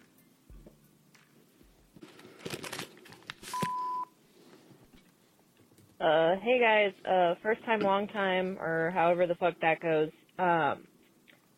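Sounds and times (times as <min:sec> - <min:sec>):
electronic beep: 0:03.5 - 0:04.1
speech: 0:06.0 - 0:10.9.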